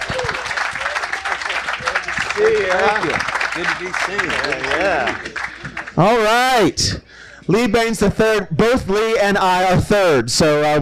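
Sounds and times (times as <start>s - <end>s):
audience applause and cheering at the Hope and Anchor: 0.0s - 6.4s
speech: 2.4s - 10.7s.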